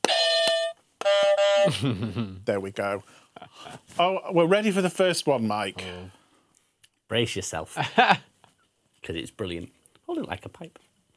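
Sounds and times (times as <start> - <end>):
game buzzer being tested: 0.0 - 1.8
speech: 1.6 - 6.2, 7.1 - 8.3, 9.0 - 10.9.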